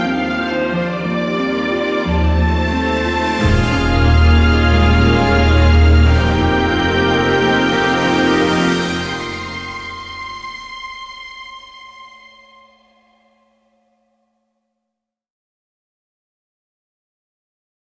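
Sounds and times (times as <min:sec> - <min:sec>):
jingle music: 0:00.2 - 0:13.1.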